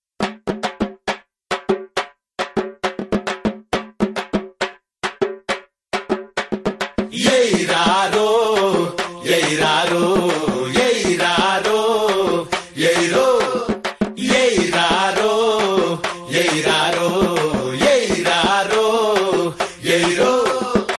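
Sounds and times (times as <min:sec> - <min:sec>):
drum beats: 0:00.2 - 0:20.9.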